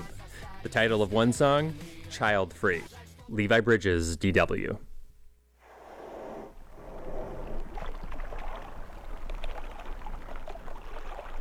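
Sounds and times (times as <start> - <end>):
speech: 0.6 - 4.9
ocean waves: 5.6 - 11.3.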